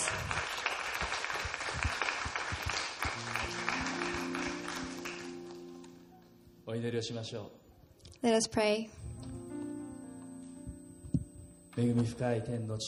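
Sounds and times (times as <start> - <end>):
applause: 0.0 - 5.6
speech: 6.7 - 7.6, 8.2 - 9.4, 11.8 - 12.8.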